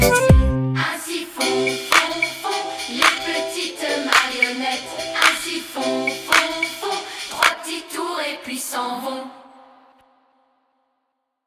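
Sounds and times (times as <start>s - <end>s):
karaoke backing track: 0.0s - 7.8s.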